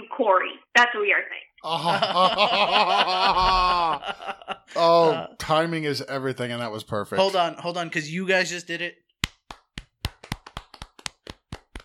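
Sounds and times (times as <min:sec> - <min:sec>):
speech: 0:00.2 - 0:09.0
laughter: 0:01.6 - 0:05.3
hands clapping: 0:09.2 - 0:11.8.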